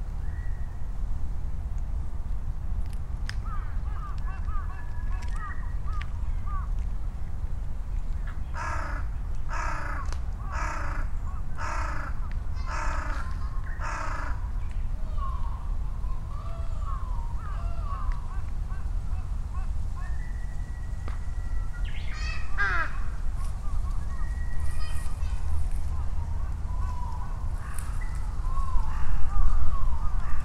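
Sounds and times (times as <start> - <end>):
low rumble of traffic: 0.0 - 30.4
crows cawing: 3.4 - 6.7, 8.5 - 14.5, 16.4 - 20.2, 22.1 - 23.2, 26.0 - 30.4
bush warblers and small birds chirping: 3.4 - 6.9, 7.9 - 30.4.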